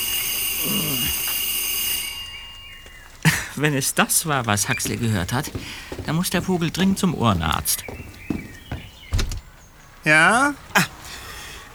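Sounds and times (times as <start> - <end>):
doorbell ringing: 0.0 - 3.0
speech: 0.6 - 1.1, 3.6 - 8.1, 10.0 - 11.0.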